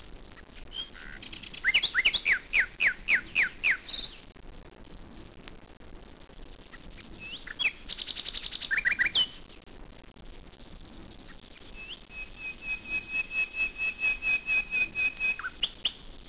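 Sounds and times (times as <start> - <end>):
nightingale singing: 0.6 - 4.3, 6.7 - 9.5, 11.3 - 16.1.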